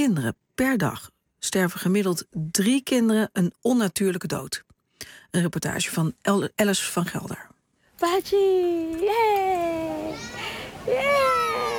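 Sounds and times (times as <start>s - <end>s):
speech: 0.0s - 11.4s
toddler playing at a playground: 8.8s - 11.7s.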